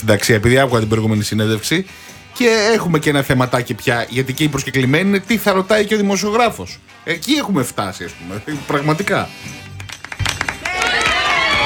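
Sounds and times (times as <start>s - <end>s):
speech: 0.0s - 9.6s
studio applause: 9.8s - 11.6s.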